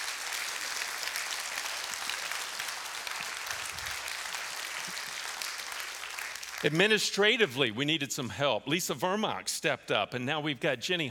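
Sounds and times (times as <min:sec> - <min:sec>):
audience applauding and cheering: 0:00.0 - 0:07.0
speech: 0:06.6 - 0:11.0.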